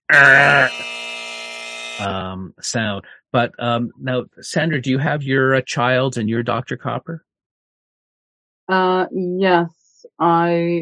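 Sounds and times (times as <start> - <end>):
speech: 0.1 - 0.9, 2.0 - 7.3, 8.7 - 10.8
buzzer sound effect signalling a mistake: 0.1 - 2.3
laughter: 2.0 - 7.2.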